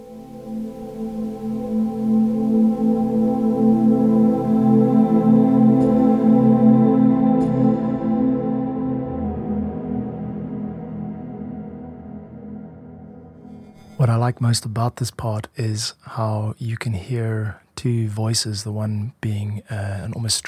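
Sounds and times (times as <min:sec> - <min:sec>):
gentle synth pad drone: 0:00.0 - 0:14.1
speech: 0:14.4 - 0:20.4.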